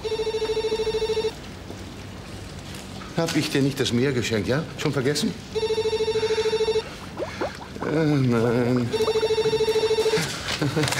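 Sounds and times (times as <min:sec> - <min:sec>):
telephone ringing: 0:00.0 - 0:01.4, 0:05.6 - 0:06.9, 0:08.9 - 0:10.4
speech: 0:03.2 - 0:05.7, 0:07.9 - 0:09.1, 0:10.6 - 0:10.9.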